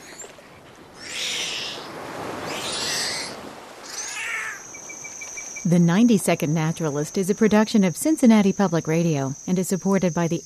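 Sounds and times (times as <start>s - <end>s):
strident calls of dolphins moving toward the same prey: 1.0s - 4.7s
speech: 5.6s - 10.4s.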